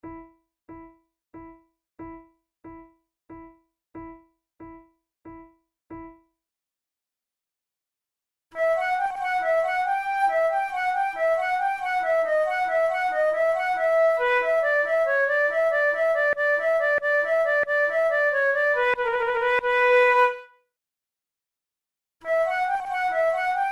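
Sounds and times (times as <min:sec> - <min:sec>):
flute playing a gigue: 0:08.5 - 0:20.6, 0:22.2 - 0:23.6.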